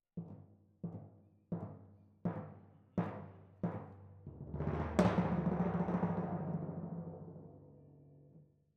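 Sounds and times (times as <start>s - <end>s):
timpani: 3.0s - 7.4s.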